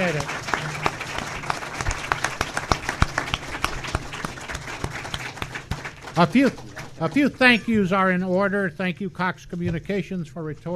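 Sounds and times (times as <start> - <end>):
applause: 0.0 - 7.9
speech: 6.2 - 10.7.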